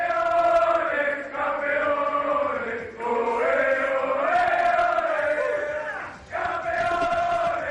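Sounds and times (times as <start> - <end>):
football players celebrating in locker room: 0.0 - 7.7.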